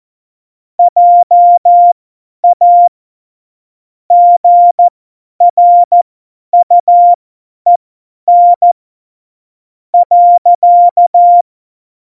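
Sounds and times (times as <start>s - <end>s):
CW Morse code beeps: 0.8s - 2.9s, 4.1s - 6.0s, 6.6s - 8.8s, 10.0s - 11.4s.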